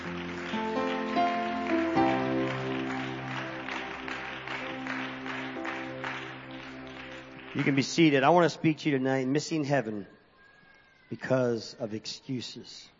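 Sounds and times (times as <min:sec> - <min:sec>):
audience hand clapping in praise: 0:00.0 - 0:08.8
sustained organ-like chords: 0:00.0 - 0:09.3
speech: 0:07.6 - 0:10.2, 0:11.1 - 0:12.9.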